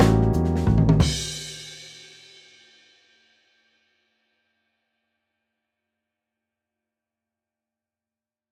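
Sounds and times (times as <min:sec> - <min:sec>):
jazz music: 0:00.0 - 0:01.4.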